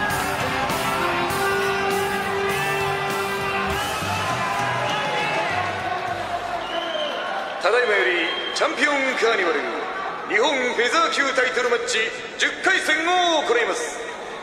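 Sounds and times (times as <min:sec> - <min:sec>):
crowd cheering at boxing champion's entrance: 0:00.0 - 0:10.8
speech: 0:07.6 - 0:14.0.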